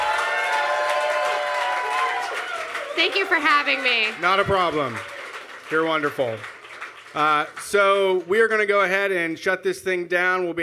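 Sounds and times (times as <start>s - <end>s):
audience applauding: 0.0s - 8.9s
speech: 3.0s - 5.1s, 5.7s - 6.5s, 7.1s - 10.6s.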